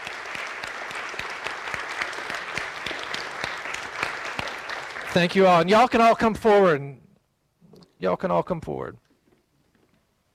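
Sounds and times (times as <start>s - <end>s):
audience applause: 0.0s - 6.0s
speech: 5.2s - 7.0s, 8.0s - 9.0s.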